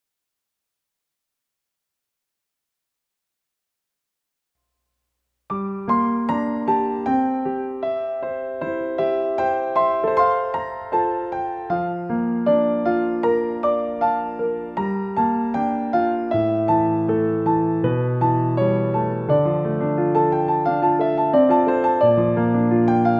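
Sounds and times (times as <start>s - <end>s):
piano cover: 5.5s - 23.1s.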